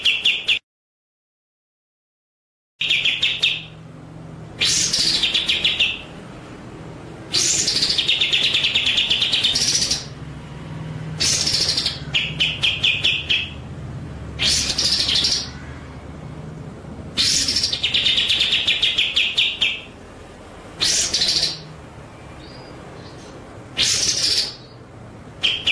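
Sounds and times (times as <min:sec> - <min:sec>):
white-rumped shama song: 0:00.0 - 0:00.6, 0:02.8 - 0:03.8, 0:04.5 - 0:06.2, 0:07.2 - 0:10.2, 0:11.2 - 0:13.7, 0:14.3 - 0:16.0, 0:17.1 - 0:20.1, 0:20.7 - 0:25.6.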